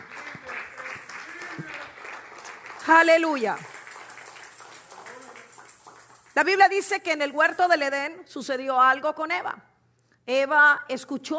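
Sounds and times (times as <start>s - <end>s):
audience applauding: 0.0s - 6.4s
speech: 2.9s - 3.7s, 6.4s - 9.7s, 10.3s - 11.3s.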